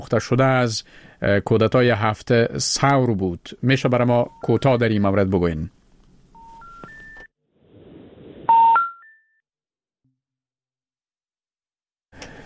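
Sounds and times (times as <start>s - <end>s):
speech: 0.0s - 5.8s
electronic telephone line tones as a call to a doctor disconnects: 6.4s - 7.3s, 8.5s - 9.2s.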